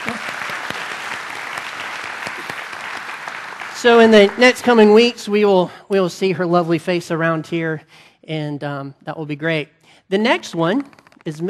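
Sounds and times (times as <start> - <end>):
audience applause: 0.0 - 4.9
speech: 3.8 - 11.4.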